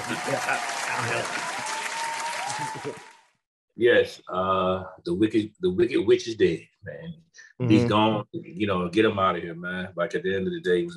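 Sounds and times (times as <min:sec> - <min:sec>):
little hand clap: 0:00.0 - 0:03.2
speech: 0:00.3 - 0:01.9, 0:02.6 - 0:03.2, 0:03.8 - 0:10.9.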